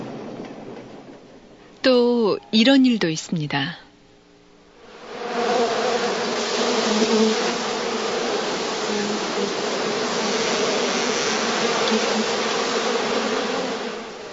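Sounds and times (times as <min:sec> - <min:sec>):
speech: 0:01.9 - 0:03.8
bees buzzing in a hive: 0:04.7 - 0:14.3.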